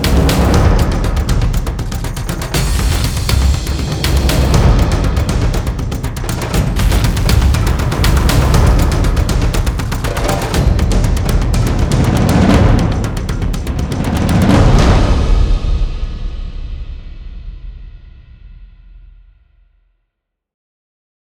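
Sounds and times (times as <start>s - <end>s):
fevered hard hitting heartbeat: 0.0s - 16.4s.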